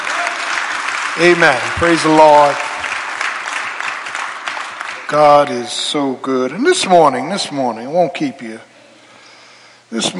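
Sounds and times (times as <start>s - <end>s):
audience applauding: 0.0s - 5.6s
speech: 1.2s - 2.7s, 5.1s - 8.7s, 9.9s - 10.1s.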